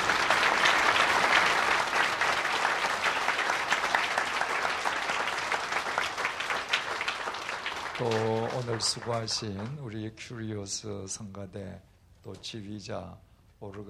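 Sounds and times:
audience applause: 0:00.0 - 0:09.9
speech: 0:08.0 - 0:13.8.

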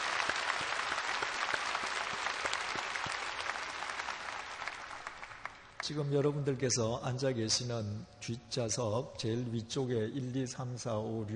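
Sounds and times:
audience applause: 0:00.0 - 0:05.8
speech: 0:05.9 - 0:11.3.

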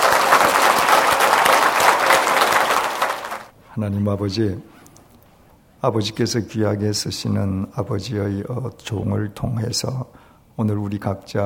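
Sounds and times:
audience applause: 0:00.0 - 0:03.5
speech: 0:03.8 - 0:04.8, 0:05.8 - 0:11.4.

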